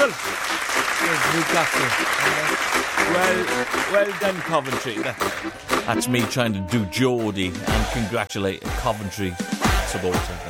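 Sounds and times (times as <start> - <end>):
applause for Coventry: 0.0 - 5.9
speech: 0.1 - 10.4.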